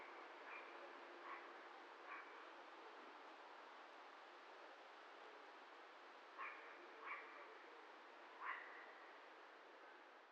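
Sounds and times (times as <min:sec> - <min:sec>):
constant hiss: 0:00.0 - 0:10.3
dog barking: 0:00.5 - 0:01.5, 0:02.1 - 0:02.3, 0:06.4 - 0:07.3, 0:08.4 - 0:08.7.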